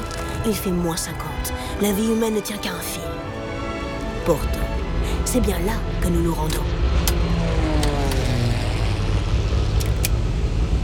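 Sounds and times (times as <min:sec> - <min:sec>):
speech: 0:00.4 - 0:03.3, 0:04.2 - 0:06.8
Twin Otter ski plane engine roar: 0:03.0 - 0:10.8
falling tonal whines: 0:03.7 - 0:10.8
sharp clicks: 0:09.8 - 0:10.2.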